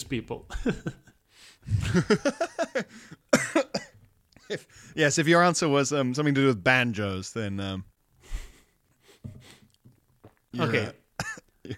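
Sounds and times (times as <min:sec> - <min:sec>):
speech: 0:00.0 - 0:03.7, 0:04.5 - 0:07.9, 0:10.5 - 0:11.7
coughing after drinking coffee: 0:01.9 - 0:04.5, 0:10.6 - 0:11.7.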